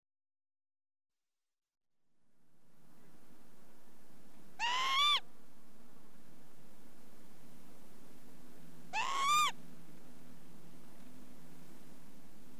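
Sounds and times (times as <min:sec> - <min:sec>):
Northern Lapwing calls: 0:04.6 - 0:05.3, 0:08.8 - 0:09.6.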